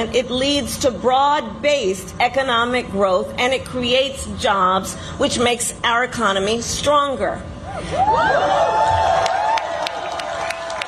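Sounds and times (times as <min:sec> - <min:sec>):
speech: 0:00.0 - 0:09.2
rally crowd cheering: 0:07.9 - 0:10.8.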